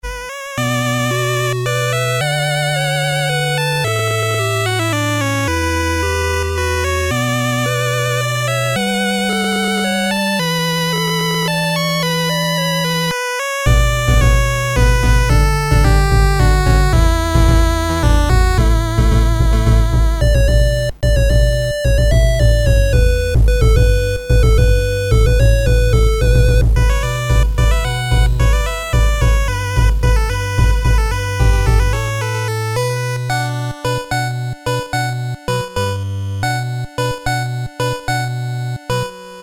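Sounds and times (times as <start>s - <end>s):
8-bit game music: 0.0s - 39.4s.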